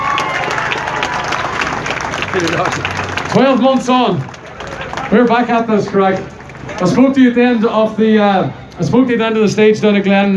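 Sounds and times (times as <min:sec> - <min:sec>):
scattered cheers: 0:00.0 - 0:06.0
crowd clapping: 0:00.0 - 0:07.9
speech: 0:02.3 - 0:04.3, 0:05.1 - 0:10.3.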